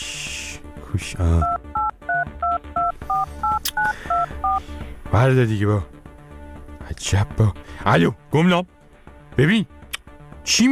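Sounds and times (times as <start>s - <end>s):
speech: 0.9s - 1.6s, 5.2s - 6.0s, 7.0s - 8.8s, 9.4s - 9.8s, 10.5s - 10.7s
telephone keypad tones while dialling a phone number: 1.4s - 4.6s.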